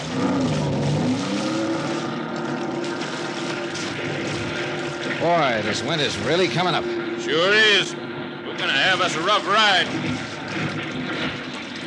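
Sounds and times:
motorboat with 230 horsepower Johnson outboard engines starting up on a lake: 0.0s - 11.8s
speech: 5.2s - 8.0s, 8.6s - 10.3s.

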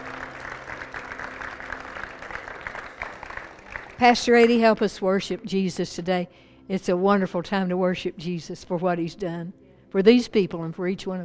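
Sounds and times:
audience applause: 0.0s - 4.6s
speech: 4.0s - 11.2s.

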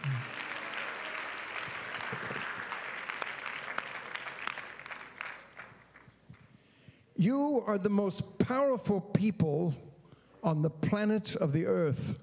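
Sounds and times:
audience clapping: 0.0s - 6.5s
speech: 7.2s - 12.2s.

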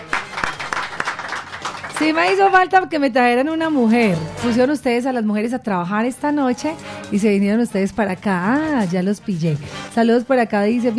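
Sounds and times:
applause: 0.0s - 2.8s
speech: 2.0s - 10.9s.

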